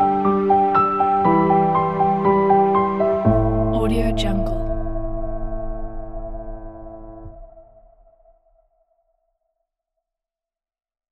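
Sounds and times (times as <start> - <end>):
cinematic piano: 0.0 - 8.6.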